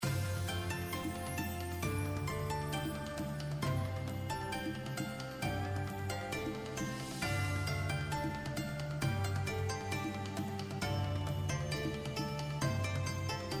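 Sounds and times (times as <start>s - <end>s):
Chinese New Year background music: 0.0s - 13.5s.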